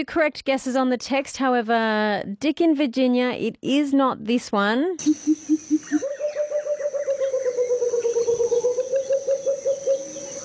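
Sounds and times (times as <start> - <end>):
speech: 0.0 - 5.6
pheasant cuckoo whistling call: 5.0 - 10.4.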